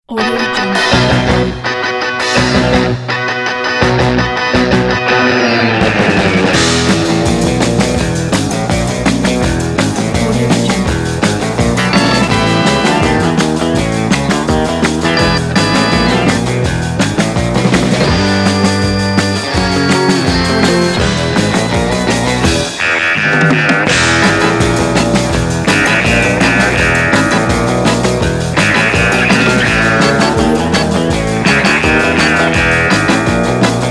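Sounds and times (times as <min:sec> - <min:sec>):
surf rock music: 0:00.0 - 0:33.9.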